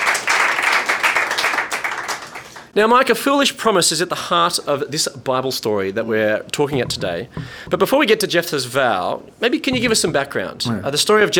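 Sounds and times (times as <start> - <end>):
round of applause: 0.0 - 2.8
speech: 2.8 - 11.3.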